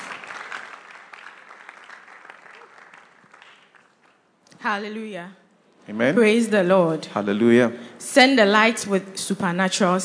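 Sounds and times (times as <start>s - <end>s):
crowd applauding: 0.0s - 4.3s
speech: 4.6s - 10.0s.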